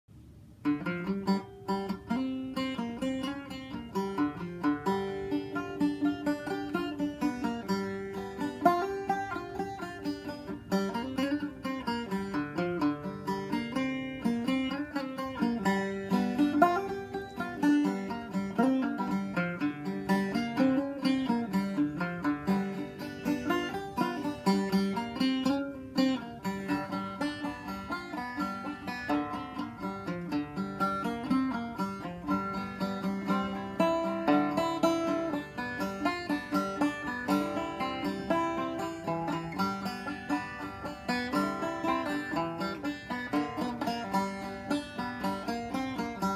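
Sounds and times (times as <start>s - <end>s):
banjo warmup: 0.1s - 46.3s.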